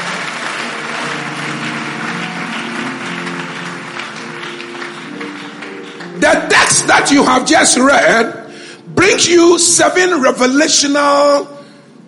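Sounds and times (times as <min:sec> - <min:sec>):
audience clapping hands: 0:00.0 - 0:08.1
speech: 0:06.7 - 0:08.4, 0:09.0 - 0:11.6.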